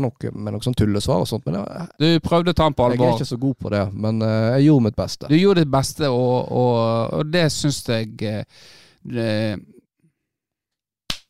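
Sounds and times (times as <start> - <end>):
speech: 0.0 - 9.8
murmured voice: 2.9 - 3.2
hand clap: 11.1 - 11.2.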